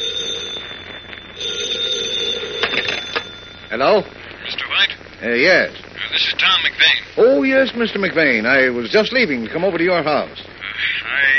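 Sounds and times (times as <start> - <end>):
telephone ringing: 0.0 - 4.2
speech: 3.7 - 10.9.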